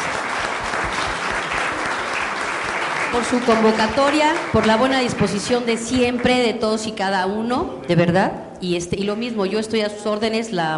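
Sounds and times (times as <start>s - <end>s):
crowd applause: 0.0s - 6.4s
speech: 3.1s - 10.7s.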